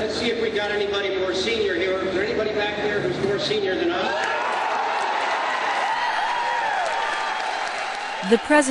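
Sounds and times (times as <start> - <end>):
speech: 0.1 - 4.3, 8.2 - 8.6
crowd cheering: 4.0 - 8.6
startled audience clapping in a standing ovation: 4.1 - 8.6.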